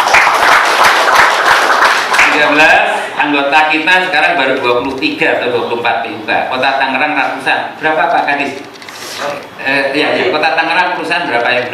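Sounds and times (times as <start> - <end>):
loud applause from members at a meeting: 0.0 - 2.6
speech: 2.4 - 11.7.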